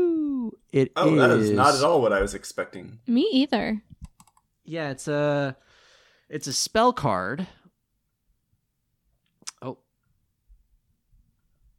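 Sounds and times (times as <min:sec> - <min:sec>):
speech: 0:00.7 - 0:03.9, 0:04.7 - 0:05.7, 0:06.3 - 0:07.6, 0:09.6 - 0:09.8
computer mouse click: 0:03.9 - 0:04.4.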